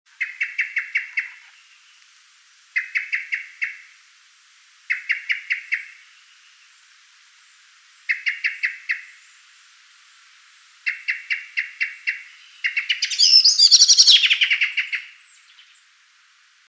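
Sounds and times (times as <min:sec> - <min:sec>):
common blackbird sharp chink calls: 0:00.2 - 0:01.8, 0:02.8 - 0:03.9, 0:04.9 - 0:06.0, 0:08.1 - 0:09.2, 0:10.8 - 0:15.8.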